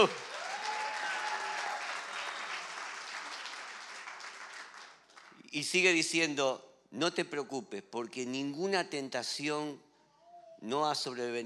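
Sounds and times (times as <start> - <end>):
speech: 0.0 - 0.3, 5.5 - 9.9, 10.6 - 11.4
audience clapping: 0.0 - 5.5.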